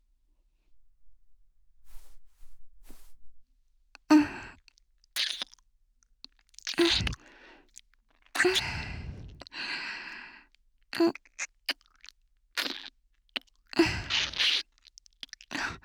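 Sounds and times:
ear licking sounds: 4.2s - 5.6s, 6.3s - 9.7s, 10.9s - 15.7s.

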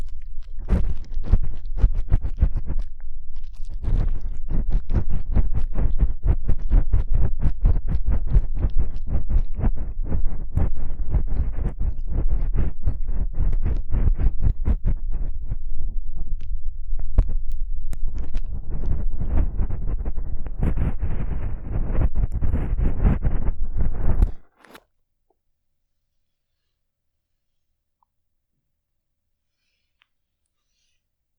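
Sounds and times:
ear cleaning sounds without voice: 0.0s - 24.8s.

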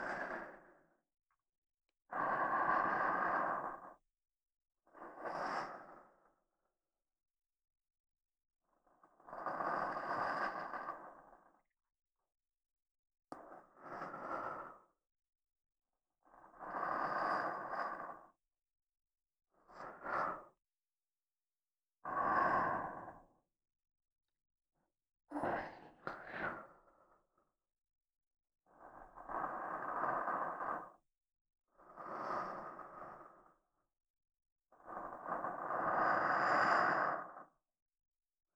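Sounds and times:
soft sleep-inducing voice in right channel: 0.0s - 1.0s, 2.1s - 4.0s, 4.9s - 6.4s, 8.8s - 11.6s, 13.3s - 14.9s, 16.3s - 18.4s, 19.6s - 20.6s, 25.3s - 27.2s, 28.6s - 31.1s, 31.8s - 33.7s, 34.8s - 37.6s.

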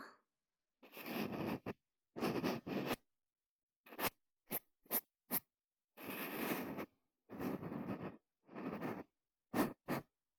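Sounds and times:
realistic deep ear cleaning sounds by a maid: 0.9s - 3.0s, 3.9s - 10.0s.

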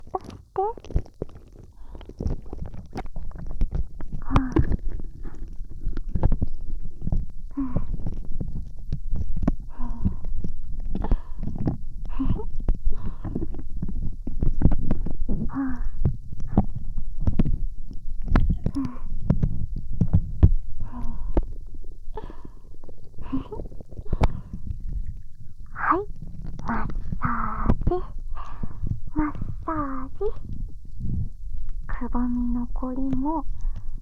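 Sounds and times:
wet slime squelches: 0.0s - 33.8s.

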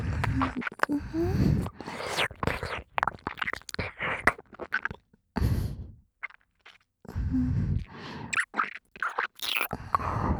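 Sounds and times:
ear licking: 0.1s - 5.0s, 7.8s - 10.3s.

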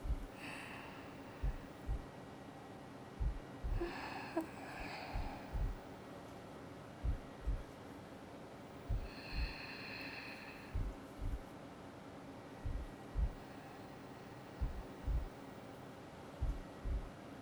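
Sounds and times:
heartbeat: 0.0s - 0.4s, 1.4s - 2.1s, 3.2s - 4.1s, 4.8s - 5.8s, 7.0s - 7.7s, 8.9s - 9.6s, 10.7s - 11.5s, 12.6s - 13.4s, 14.6s - 15.4s, 16.4s - 17.2s.

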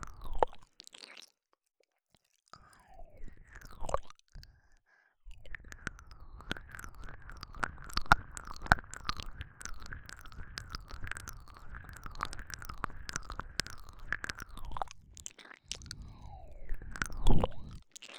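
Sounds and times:
ear licking: 5.5s - 18.1s.

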